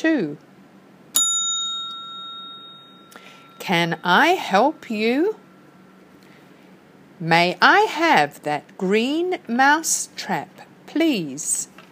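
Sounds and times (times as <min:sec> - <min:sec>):
speech: 0:00.0 - 0:00.5, 0:03.7 - 0:05.4, 0:07.2 - 0:11.7
bell ding signalling to turn the page of a read-along book: 0:01.2 - 0:05.3.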